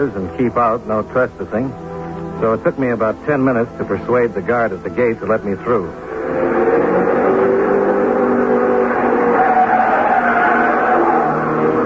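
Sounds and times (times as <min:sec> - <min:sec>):
speech: 0:00.0 - 0:06.6
test cars thundering past on track: 0:06.0 - 0:11.8.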